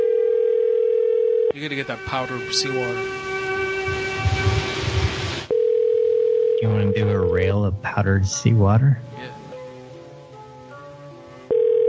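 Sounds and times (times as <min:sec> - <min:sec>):
telephone ringing electronic tone: 0:00.0 - 0:01.5, 0:05.5 - 0:07.0, 0:11.5 - 0:11.8
speech: 0:01.6 - 0:03.3, 0:06.6 - 0:09.4
low buzzing hum: 0:02.9 - 0:05.5.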